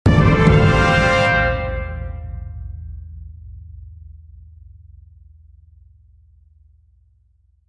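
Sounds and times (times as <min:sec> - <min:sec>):
French horn: 0:00.1 - 0:02.6
victory trumpet fanfare: 0:00.1 - 0:02.7.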